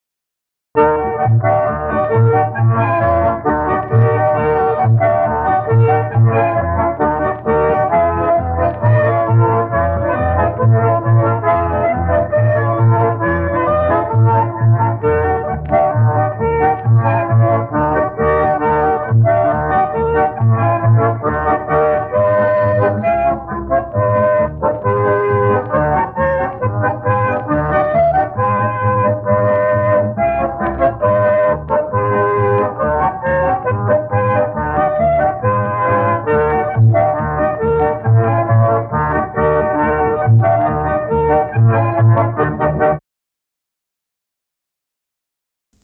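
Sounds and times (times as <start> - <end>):
concertina playing a polka: 0.8 - 43.0.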